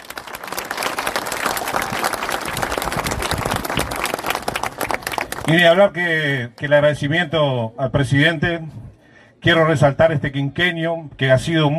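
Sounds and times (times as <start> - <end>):
audience applause: 0.0 - 5.6
speech: 5.5 - 8.8, 9.4 - 11.7.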